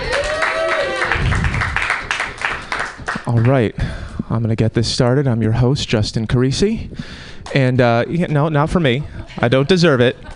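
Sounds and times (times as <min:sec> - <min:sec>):
audience applause: 0:00.0 - 0:03.6
speech: 0:03.4 - 0:10.3.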